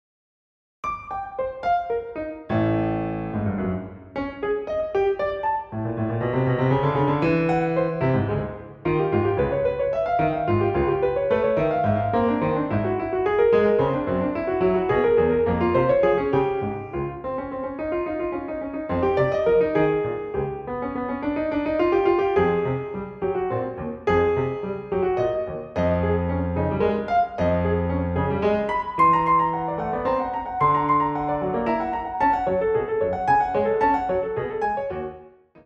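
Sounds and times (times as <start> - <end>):
solo piano: 0.8 - 35.6.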